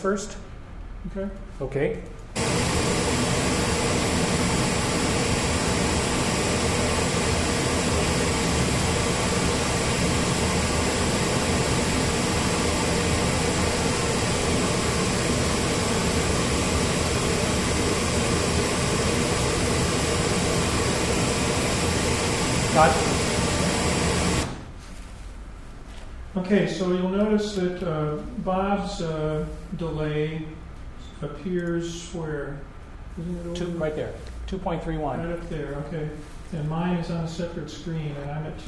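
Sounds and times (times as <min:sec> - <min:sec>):
speech: 0:00.0 - 0:02.9, 0:26.5 - 0:30.6, 0:31.2 - 0:38.6
pink noise test signal: 0:02.4 - 0:24.6.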